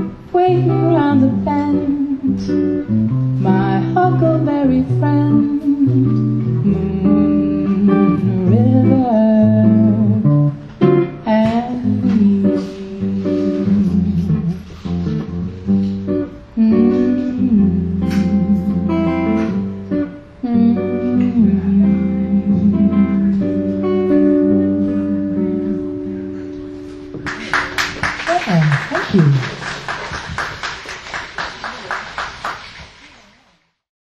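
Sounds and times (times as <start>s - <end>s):
guitar: 0.0s - 33.4s
person singing: 0.3s - 2.8s, 3.4s - 10.6s, 11.2s - 14.8s, 16.6s - 19.6s, 20.4s - 26.3s.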